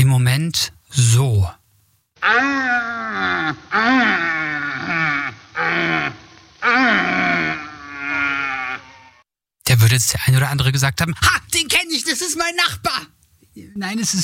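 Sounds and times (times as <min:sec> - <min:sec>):
speech: 0:00.2 - 0:01.6, 0:02.2 - 0:04.2, 0:09.8 - 0:14.2
red deer stag roaring during rutting season: 0:02.2 - 0:09.2.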